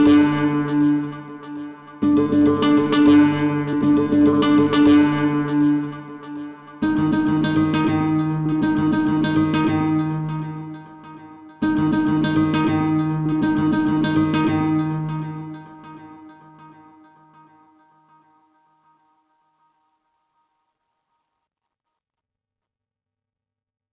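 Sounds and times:
music loop stem: 0.0 - 16.3.

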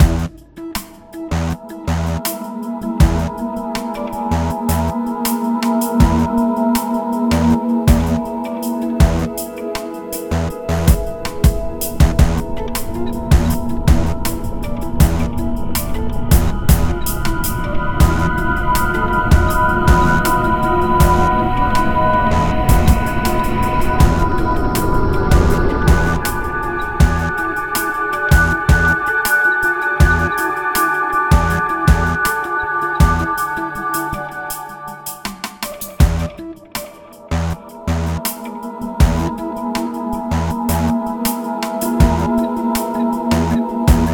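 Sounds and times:
tense music: 0.0 - 44.1.

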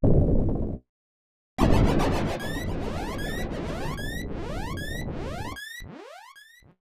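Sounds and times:
mysterious crash: 1.6 - 4.8.

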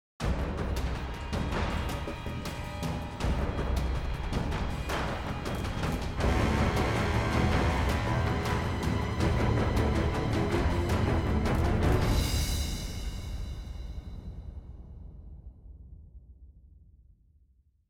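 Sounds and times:
boss combat intro game music: 0.2 - 13.0.

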